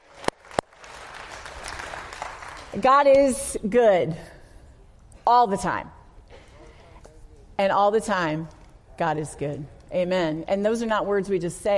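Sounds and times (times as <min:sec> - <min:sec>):
church congregation clapping during a sermon: 0:00.0 - 0:02.8
speech: 0:02.8 - 0:04.3, 0:05.3 - 0:06.0, 0:07.6 - 0:11.7.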